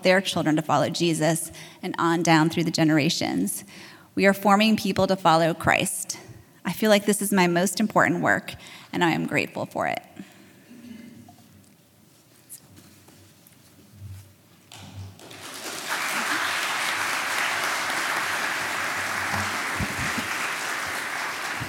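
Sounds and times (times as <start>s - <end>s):
speech: 0.0s - 10.3s
audience clapping: 15.2s - 21.6s.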